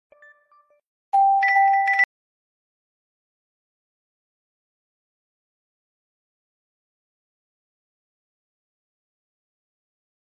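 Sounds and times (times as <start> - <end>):
OnePlus phone tinkle tone: 0.2 - 2.1.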